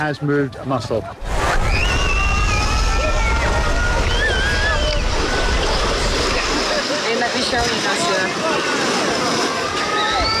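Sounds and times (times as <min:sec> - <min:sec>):
speech: 0:00.0 - 0:01.8, 0:07.4 - 0:09.4
waves on a beach in Odessa: 0:03.0 - 0:10.3.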